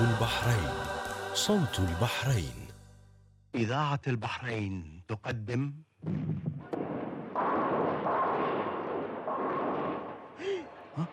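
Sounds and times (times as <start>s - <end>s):
speech: 0.2s - 2.6s, 3.5s - 6.5s, 10.4s - 11.1s
cannon fire from the sea: 6.8s - 10.4s.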